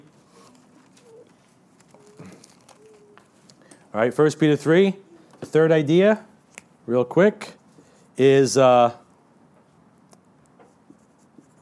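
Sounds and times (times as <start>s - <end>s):
speech: 3.9s - 6.3s, 6.9s - 7.6s, 8.2s - 9.0s
hand writing a word with a pen: 10.6s - 11.6s.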